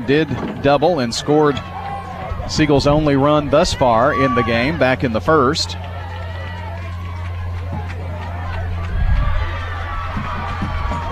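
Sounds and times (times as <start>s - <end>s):
crowd clapping and cheering on other fields: 0.0s - 11.0s
murmur of voices: 0.0s - 11.0s
speech: 0.1s - 1.8s, 2.5s - 5.9s.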